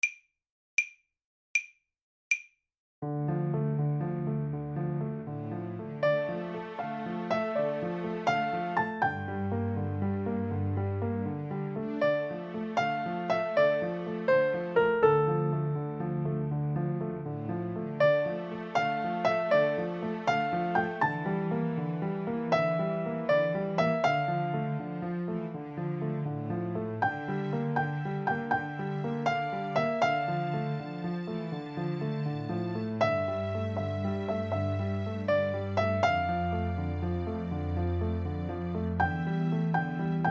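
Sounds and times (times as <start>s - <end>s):
piano trio: 3.0s - 40.2s.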